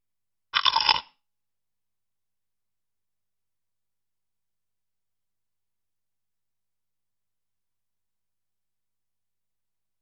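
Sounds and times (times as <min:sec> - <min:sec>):
eating food: 0:00.6 - 0:01.1.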